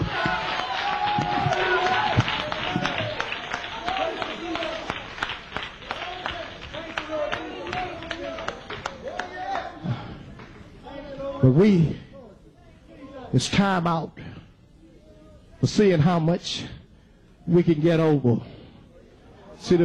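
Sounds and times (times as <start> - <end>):
crowd audience clapping hands: 0.0 - 10.6
speech: 11.5 - 12.0, 13.3 - 14.2, 15.6 - 16.8, 17.5 - 18.6, 19.6 - 19.8.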